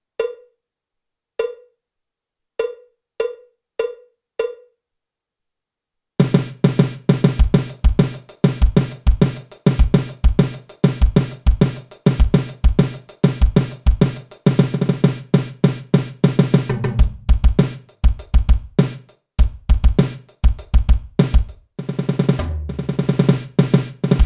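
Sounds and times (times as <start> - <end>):
jazz fusion drum kit solo: 6.2 - 24.2.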